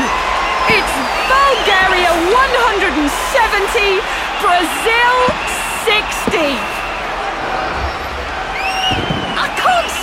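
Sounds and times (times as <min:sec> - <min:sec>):
stadium crowd cheering: 0:00.0 - 0:10.0
speech: 0:01.5 - 0:06.8.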